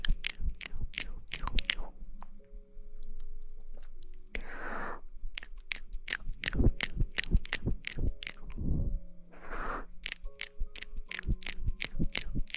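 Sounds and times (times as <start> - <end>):
wet mouth clicks and pops: 0.0 - 1.9, 5.4 - 8.6, 10.0 - 12.5
low hums and steady tones: 0.0 - 12.4
short hissy breaths or swishes: 8.6 - 10.0.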